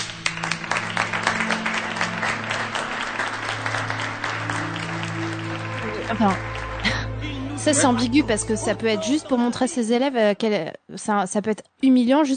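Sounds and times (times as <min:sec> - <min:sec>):
audience applause: 0:00.0 - 0:08.2
speech: 0:06.1 - 0:06.5, 0:07.6 - 0:12.3
laughter: 0:06.8 - 0:09.7.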